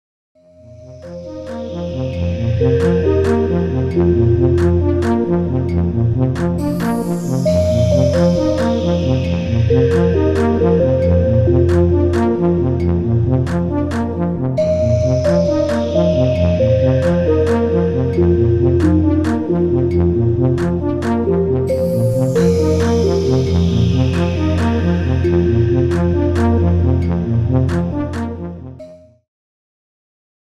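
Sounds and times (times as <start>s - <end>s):
OP-1 synthesizer sample: 0.4s - 29.2s.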